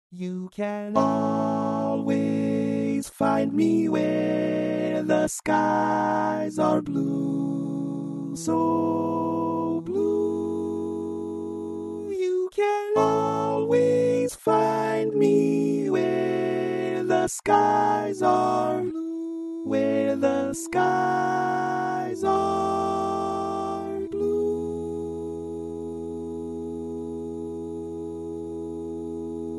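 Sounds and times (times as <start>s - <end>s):
tenor singing: 0.2s - 29.5s.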